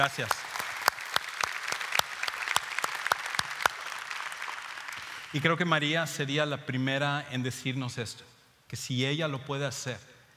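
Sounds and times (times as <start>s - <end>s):
speech: 0.0s - 0.4s, 5.3s - 10.1s
audience applause: 0.0s - 5.6s.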